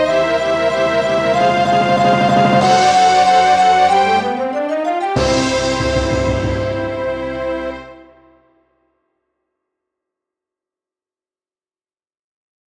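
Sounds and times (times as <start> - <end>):
rondo piece: 0.0 - 7.9.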